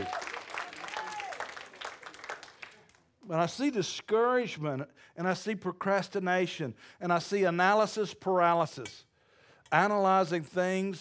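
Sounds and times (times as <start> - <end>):
person whooping: 0.0 - 1.5
audience clapping: 0.0 - 3.1
speech: 3.3 - 9.1, 9.7 - 11.0.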